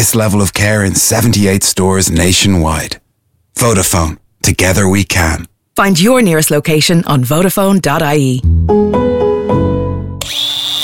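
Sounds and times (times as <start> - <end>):
speech: 0.0 - 3.0, 3.6 - 9.0, 10.2 - 10.8
power tool motor spinning up in a Screwfix ad: 10.2 - 10.8.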